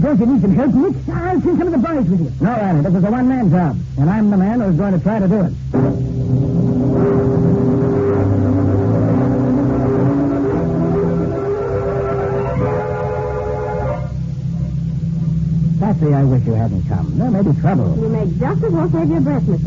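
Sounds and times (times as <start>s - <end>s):
speech: 0.0s - 6.4s, 16.0s - 19.6s
car engine accelerating: 5.7s - 16.4s.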